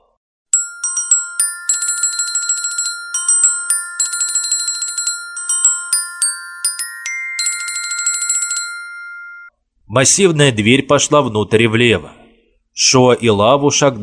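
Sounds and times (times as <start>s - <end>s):
icy bells chiming: 0.5s - 9.5s
speech: 9.9s - 12.2s, 12.8s - 14.0s.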